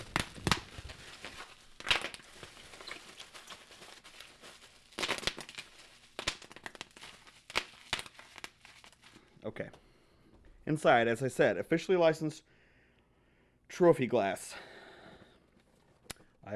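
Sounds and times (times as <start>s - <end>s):
bubble wrap being unwrapped and crinkled: 0.0s - 9.3s
speech: 9.5s - 9.8s, 10.7s - 12.5s, 13.8s - 14.7s.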